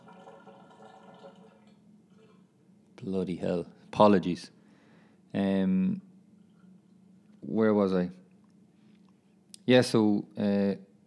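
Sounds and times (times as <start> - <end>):
dishwasher running: 0.0 - 2.4
speech: 3.0 - 4.6, 5.3 - 6.1, 7.5 - 8.2, 9.7 - 10.9.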